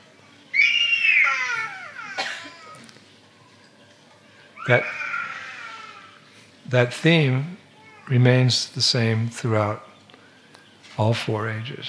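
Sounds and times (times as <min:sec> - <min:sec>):
small child crying: 0:00.5 - 0:02.9, 0:04.6 - 0:06.2
speech: 0:04.7 - 0:05.0, 0:06.7 - 0:09.9, 0:11.0 - 0:11.8.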